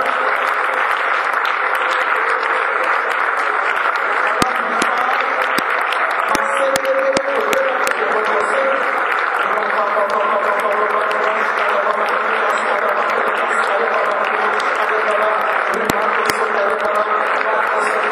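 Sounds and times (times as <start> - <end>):
audience clapping: 0.0 - 18.1.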